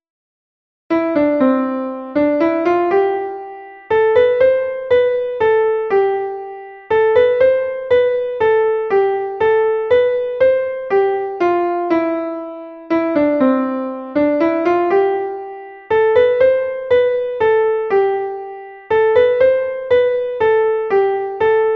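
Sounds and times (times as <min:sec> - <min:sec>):
carol melody: 0:00.9 - 0:21.7.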